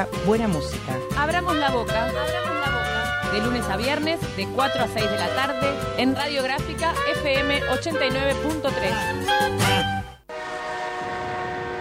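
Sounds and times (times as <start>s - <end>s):
speech: 0.0s - 2.7s, 3.3s - 10.0s
loud siren wailing: 10.3s - 11.7s.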